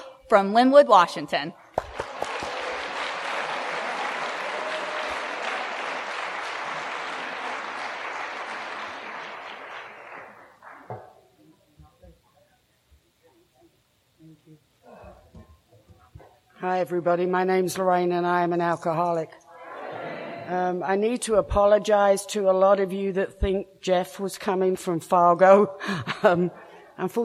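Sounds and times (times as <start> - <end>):
speech: 0.3 - 1.6, 16.8 - 19.4, 20.5 - 27.2
audience applause at a Saturday night recovery speaker meeting at Pine Lake: 1.7 - 11.1.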